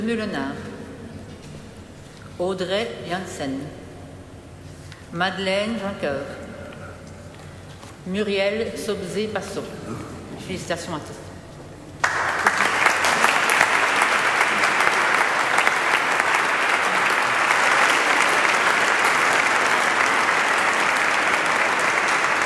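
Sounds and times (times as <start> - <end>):
speech: 0.0 - 0.7, 2.4 - 3.8, 5.1 - 6.4, 8.0 - 11.2
applause for the finalists: 12.0 - 22.4.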